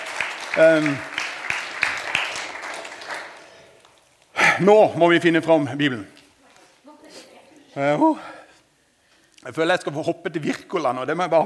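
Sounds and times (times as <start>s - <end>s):
audience applause: 0.0s - 4.0s
speech: 0.6s - 1.1s, 4.6s - 6.2s, 7.8s - 8.4s, 9.4s - 11.4s.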